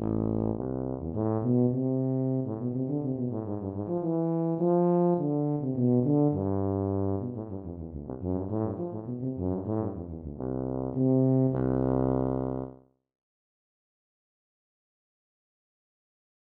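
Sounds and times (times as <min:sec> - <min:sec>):
tuba: 0:00.0 - 0:12.9.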